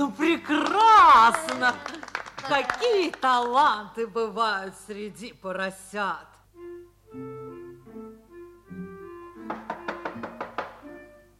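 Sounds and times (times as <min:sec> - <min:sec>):
speech: 0:00.0 - 0:06.3
knocking on a door: 0:09.4 - 0:10.9.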